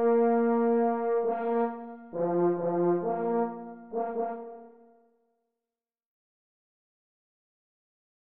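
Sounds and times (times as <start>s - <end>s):
French horn in F: 0.0s - 5.1s.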